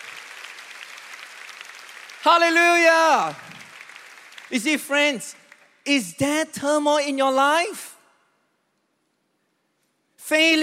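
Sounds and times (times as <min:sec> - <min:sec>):
audience clapping hands: 0:00.0 - 0:05.9
speech: 0:02.2 - 0:03.5, 0:04.5 - 0:07.9, 0:10.3 - 0:10.6.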